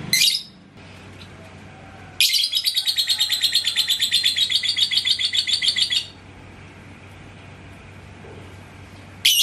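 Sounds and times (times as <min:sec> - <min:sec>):
lovebird chirping: 0:00.1 - 0:00.6, 0:02.2 - 0:06.2, 0:09.2 - 0:09.4.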